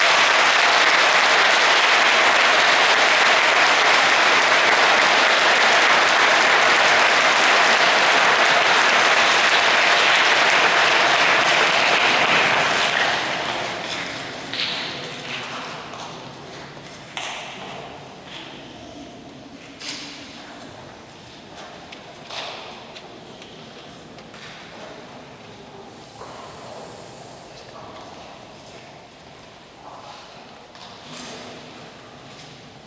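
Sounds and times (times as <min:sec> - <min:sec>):
applause: 0:00.0 - 0:15.8.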